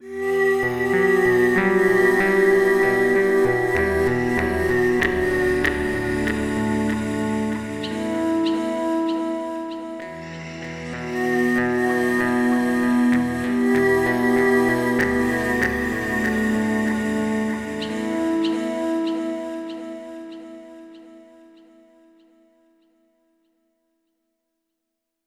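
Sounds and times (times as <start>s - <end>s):
synth pad: 0.0s - 21.8s.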